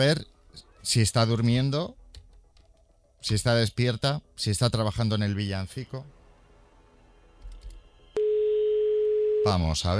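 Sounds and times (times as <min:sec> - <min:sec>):
speech: 0:00.0 - 0:02.0, 0:03.2 - 0:06.2, 0:09.4 - 0:09.9
telephone ringing tone after dialing a call: 0:08.1 - 0:09.6.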